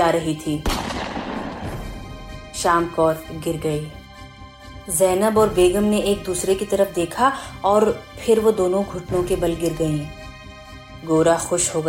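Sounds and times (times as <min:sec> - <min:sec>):
speech: 0:00.1 - 0:01.1, 0:02.6 - 0:04.0, 0:04.8 - 0:10.2, 0:11.0 - 0:11.8
loud gunshot blast: 0:00.6 - 0:02.1.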